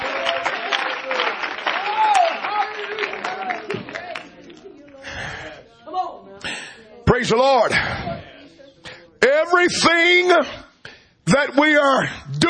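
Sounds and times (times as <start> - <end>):
audience clapping hands: 0.0 - 5.0
speech: 7.2 - 7.9, 9.6 - 10.6, 11.4 - 12.4.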